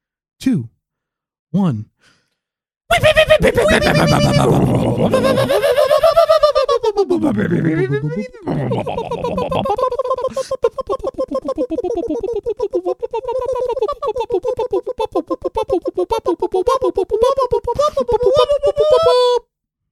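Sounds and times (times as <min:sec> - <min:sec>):
speech: 0:00.4 - 0:00.8, 0:01.5 - 0:02.2, 0:02.9 - 0:19.5
laughter: 0:02.9 - 0:19.4
voice imitating a bunker alarm: 0:09.6 - 0:19.4.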